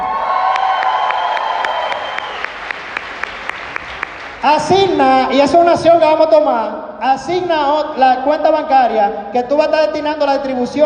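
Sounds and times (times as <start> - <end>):
audience applause: 0.0 - 4.4
speech: 4.4 - 10.8.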